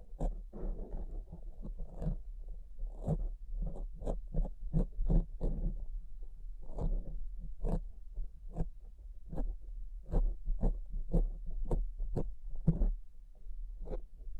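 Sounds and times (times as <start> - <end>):
steady low hum: 0.0 - 14.3
tapping and scratching: 0.1 - 2.2, 2.9 - 5.9, 10.1 - 13.0.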